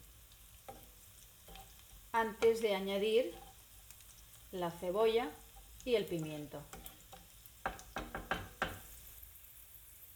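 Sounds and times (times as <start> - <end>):
garlic frying in a pan for a mountain-style rice: 0.0 - 10.1
speech: 2.2 - 3.4, 4.5 - 6.8
stirring knocks: 6.7 - 8.9.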